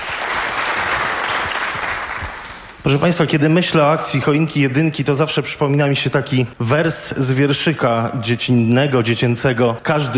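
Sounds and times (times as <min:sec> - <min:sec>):
audience applause thanking donors at a charity auction: 0:00.0 - 0:02.7
speech: 0:02.8 - 0:10.1.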